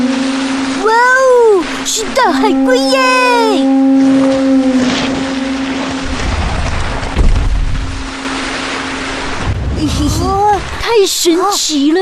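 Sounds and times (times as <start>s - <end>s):
conch shell horn blowing: 0.0s - 7.2s
ocean-like noise: 0.0s - 12.0s
speech: 1.8s - 4.5s, 9.8s - 12.0s.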